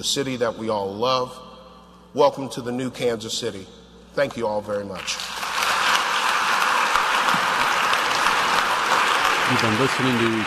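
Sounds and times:
speech: 0:00.0 - 0:01.5, 0:02.1 - 0:05.3, 0:09.5 - 0:10.4
standing ovation at Kansas City Convention Hall: 0:05.0 - 0:10.4.

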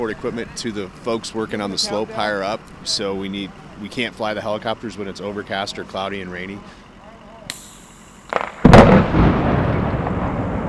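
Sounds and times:
speech: 0:00.0 - 0:06.8
sharp cracks: 0:07.5 - 0:09.5
loud detonation blasting rock apart with detonators: 0:07.5 - 0:10.6.

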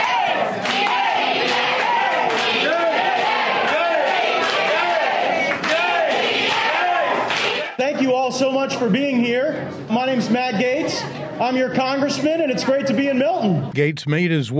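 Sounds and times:
crowd of competing chanters shouting: 0:00.0 - 0:07.8
speech: 0:08.6 - 0:14.5.

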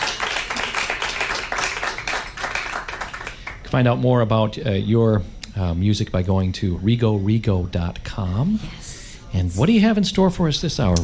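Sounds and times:
audience applause: 0:00.0 - 0:03.7
speech: 0:03.7 - 0:11.0.

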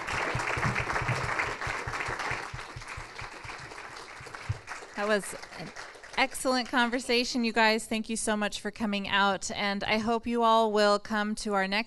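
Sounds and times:
audience applause: 0:00.0 - 0:07.2
speech: 0:05.0 - 0:11.8.

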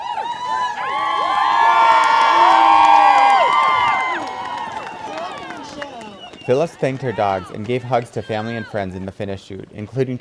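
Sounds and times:
high-pitched shouts and whoops: 0:00.0 - 0:07.6
crowd cheering: 0:00.0 - 0:09.3
faint clapping: 0:02.0 - 0:08.5
speech: 0:06.5 - 0:10.1.

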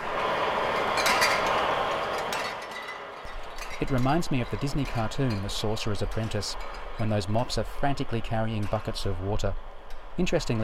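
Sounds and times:
antique soda bottle mixer rumbling and clattering as it swings bottles: 0:00.0 - 0:10.6
glass bottles clinking: 0:00.8 - 0:07.2
speech: 0:03.8 - 0:10.6.

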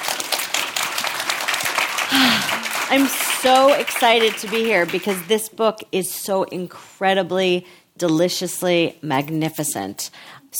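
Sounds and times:
audience clapping to welcome two authors on stage: 0:00.0 - 0:05.4
speech: 0:02.9 - 0:10.5.

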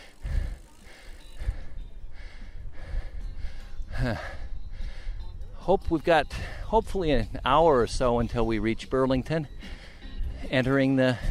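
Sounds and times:
heavy breathing from cycling exertion: 0:00.0 - 0:05.6, 0:09.5 - 0:11.2
speech: 0:04.0 - 0:04.4, 0:05.6 - 0:09.8, 0:10.4 - 0:11.2.

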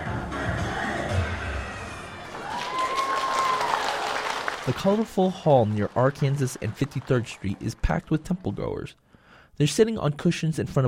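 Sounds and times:
Vietnamese pop music: 0:00.0 - 0:02.6
grade schoolers clapping: 0:02.2 - 0:08.7
speech: 0:04.7 - 0:09.0, 0:09.6 - 0:10.8.

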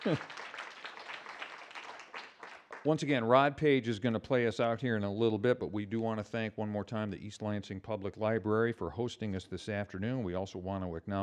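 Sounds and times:
speech: 0:00.0 - 0:00.4, 0:02.8 - 0:11.2
audience applause for storytellers at the East Lansing Public Library: 0:00.0 - 0:03.1.

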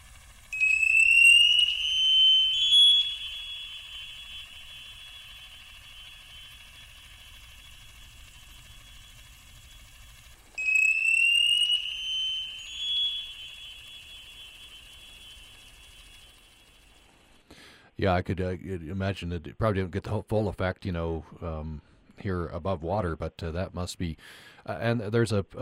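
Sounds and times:
Navy sonar pings: 0:00.5 - 0:16.9
speech: 0:18.0 - 0:25.6.

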